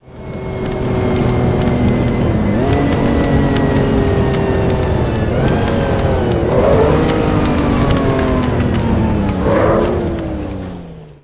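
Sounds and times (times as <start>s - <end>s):
vehicles throttling off: 0.0s - 11.2s.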